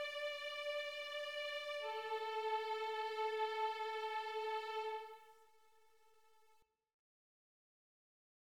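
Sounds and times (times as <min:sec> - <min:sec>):
violin piece: 0:00.0 - 0:05.5.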